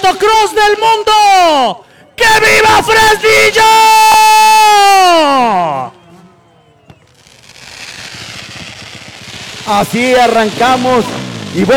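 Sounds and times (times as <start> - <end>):
speech: 0.1 - 5.9, 9.7 - 11.7
daytime fireworks: 5.8 - 11.7.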